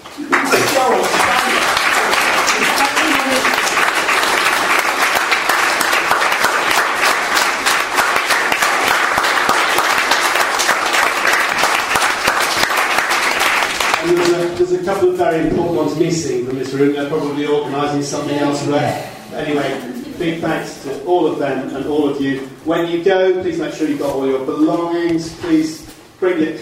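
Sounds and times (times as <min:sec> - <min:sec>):
audience applause: 0:00.0 - 0:14.7
speech: 0:14.9 - 0:26.6.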